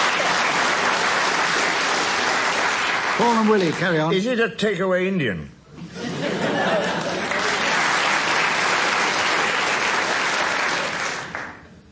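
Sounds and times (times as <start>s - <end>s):
audience applause: 0.0s - 4.1s, 6.7s - 11.7s
speech: 3.2s - 5.6s
laughter: 5.8s - 8.3s.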